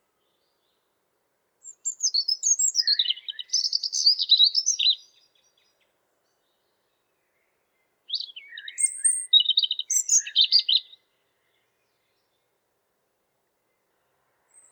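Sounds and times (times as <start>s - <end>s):
European robin singing high liquid twitters and sweet trills: 1.6s - 6.7s, 8.1s - 12.3s.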